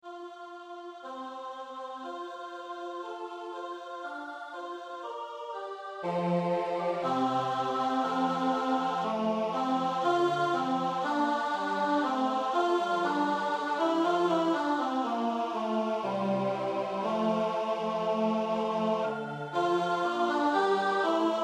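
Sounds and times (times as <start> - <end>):
tenor singing: 5.9 - 21.4.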